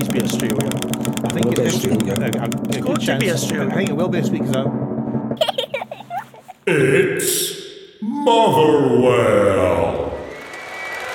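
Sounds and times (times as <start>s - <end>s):
prize wheel being spun, mechanical ticks and clicks: 0.0s - 4.7s
speech: 1.7s - 4.8s, 6.7s - 7.5s, 8.2s - 9.8s
laughter: 5.4s - 7.5s.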